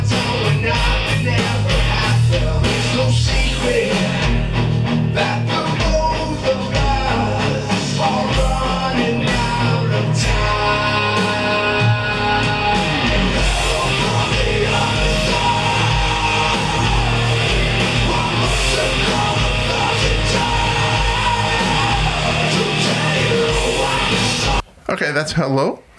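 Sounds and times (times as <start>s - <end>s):
heavy metal cover song with guitar solo: 0.0s - 24.6s
speech: 25.2s - 25.9s.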